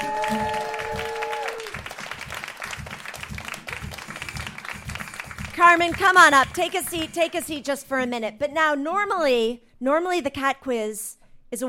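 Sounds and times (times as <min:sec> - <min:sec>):
audience applause: 0:00.0 - 0:07.0
rhythmic low thumping beat: 0:01.8 - 0:07.7
speech: 0:05.7 - 0:11.6.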